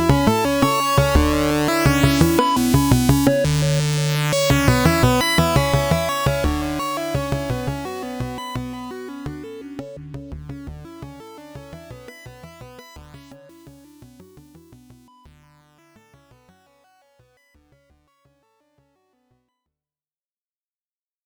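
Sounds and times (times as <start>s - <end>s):
modular synthesizer: 0.0s - 14.1s.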